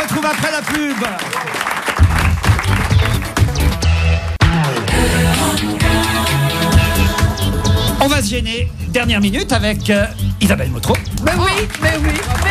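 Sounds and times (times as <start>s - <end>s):
audience applause: 0.0s - 3.6s, 11.3s - 12.5s
speech: 0.2s - 1.4s, 8.2s - 12.5s
loud upbeat music bed with thumping bass line: 2.0s - 12.5s.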